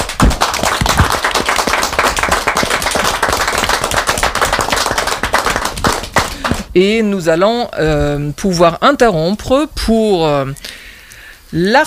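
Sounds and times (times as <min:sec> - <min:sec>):
spontaneous applause from a group of people: 0:00.0 - 0:06.7
speech: 0:06.8 - 0:10.8, 0:11.5 - 0:11.8.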